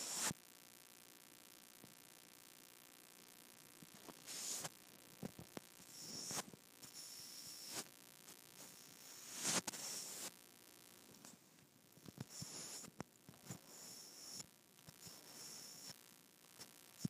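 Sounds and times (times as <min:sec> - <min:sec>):
microphone rubbed against skin: 0:03.9 - 0:10.4, 0:12.0 - 0:16.0.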